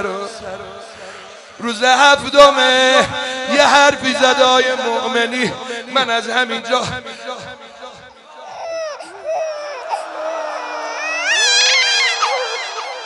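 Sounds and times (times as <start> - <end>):
speech: 0.0 - 7.2
infant crying: 8.4 - 13.0.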